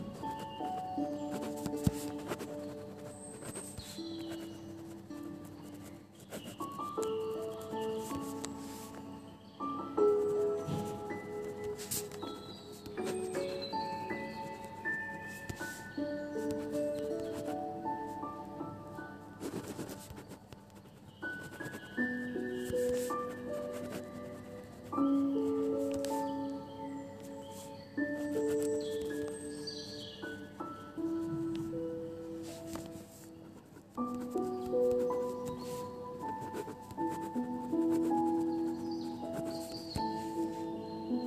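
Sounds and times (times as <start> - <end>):
quiet high twittering: 0.0 - 19.2, 20.2 - 31.0, 38.2 - 41.2
faint steady hiss: 0.0 - 41.2
soft piano playing slow sustained notes and chords: 0.0 - 41.2.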